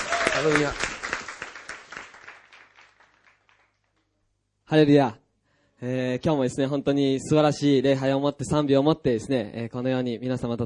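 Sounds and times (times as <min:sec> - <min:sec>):
applause: 0:00.0 - 0:04.0
speech: 0:00.4 - 0:00.9, 0:04.7 - 0:05.2, 0:05.8 - 0:10.6.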